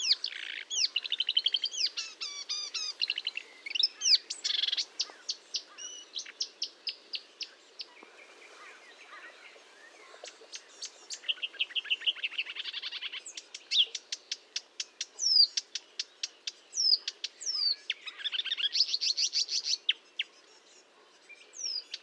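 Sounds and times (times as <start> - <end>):
marsh warbler singing: 0.0 - 22.0.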